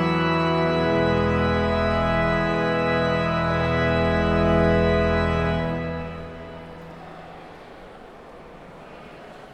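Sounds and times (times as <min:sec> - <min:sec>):
organ chorale prelude: 0:00.0 - 0:07.0.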